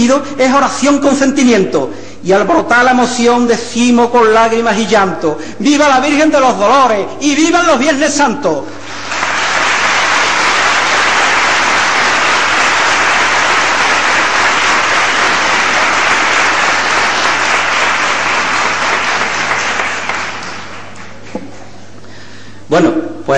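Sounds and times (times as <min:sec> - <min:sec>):
speech: 0:00.0 - 0:08.8, 0:22.7 - 0:23.3
crowd ovation at a procession: 0:08.8 - 0:21.4.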